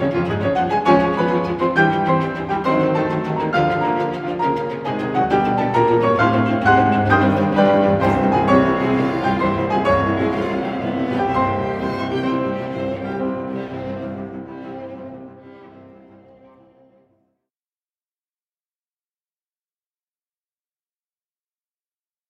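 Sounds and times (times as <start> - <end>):
piano: 0.0 - 17.2.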